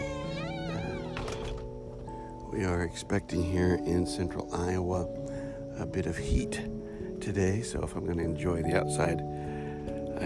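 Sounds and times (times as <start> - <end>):
door opening onto a deck with a wavering squeak: 0.0 - 2.1
speech: 2.5 - 9.3.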